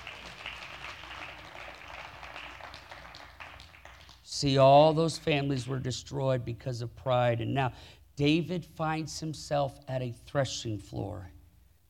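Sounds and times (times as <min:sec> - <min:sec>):
audience clapping hands: 0:00.0 - 0:04.5
speech: 0:04.4 - 0:11.4.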